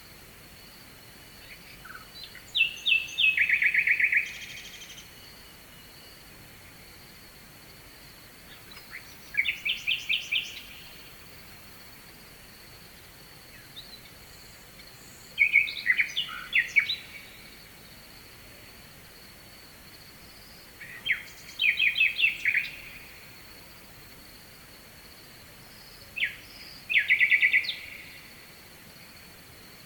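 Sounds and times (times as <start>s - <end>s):
faint steady hiss: 0.0s - 29.8s
nightingale singing: 1.4s - 6.2s, 8.4s - 11.2s, 13.0s - 17.6s, 20.7s - 23.4s, 25.8s - 28.5s.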